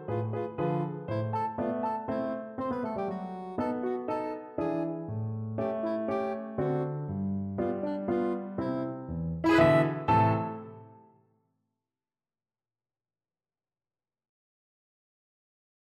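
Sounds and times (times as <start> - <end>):
soprano saxophone melody: 0.0 - 11.0.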